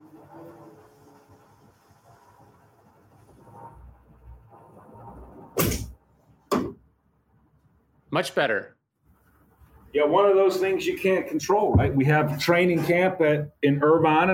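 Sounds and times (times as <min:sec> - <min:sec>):
door being closed: 0:05.6 - 0:06.8, 0:11.5 - 0:13.1
speech: 0:08.2 - 0:08.8, 0:10.0 - 0:14.3.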